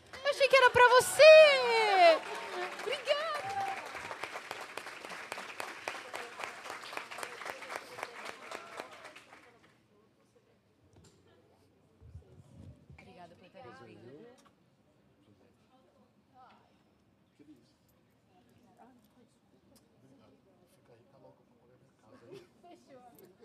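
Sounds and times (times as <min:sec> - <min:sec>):
audience applause: 0:00.0 - 0:09.6
speech: 0:00.7 - 0:03.2.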